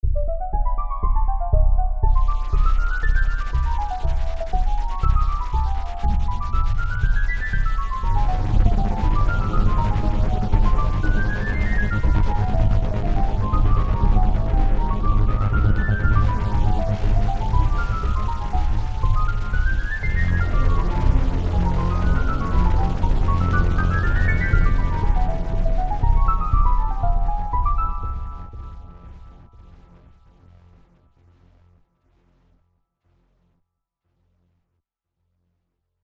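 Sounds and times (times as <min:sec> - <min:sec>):
Moog synthesizer: 0:00.0 - 0:32.5.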